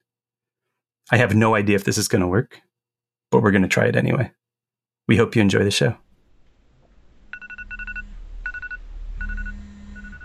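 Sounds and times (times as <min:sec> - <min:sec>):
speech: 0:01.1 - 0:02.7, 0:03.3 - 0:04.4, 0:05.1 - 0:06.0
iPhone alarm ringing: 0:07.3 - 0:10.2.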